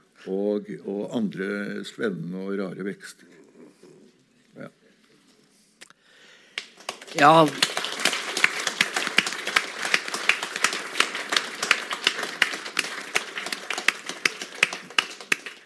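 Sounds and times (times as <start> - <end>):
speech: 0.2 - 3.4, 4.6 - 4.8, 7.1 - 7.7
audience clapping: 6.5 - 15.6.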